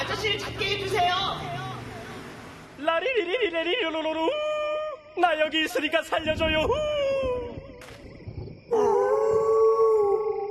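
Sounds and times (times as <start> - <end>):
speech: 0.2 - 1.6, 2.8 - 4.5, 5.2 - 6.9, 8.7 - 9.0
animals howling in response to singing: 8.7 - 10.4.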